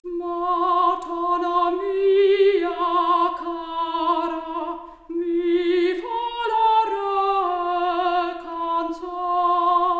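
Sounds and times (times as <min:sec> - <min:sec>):
4-bit stereo soprano voice: 0:00.0 - 0:09.9.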